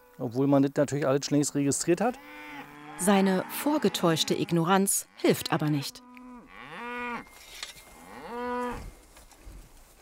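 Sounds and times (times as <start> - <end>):
speech: 0.2 - 6.1
cattle lowing: 2.1 - 7.3, 7.9 - 8.9
soft rustle: 7.2 - 10.0.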